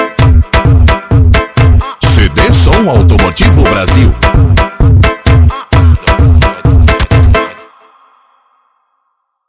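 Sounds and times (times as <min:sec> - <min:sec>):
Brazilian automotive funk music: 0:00.0 - 0:07.6.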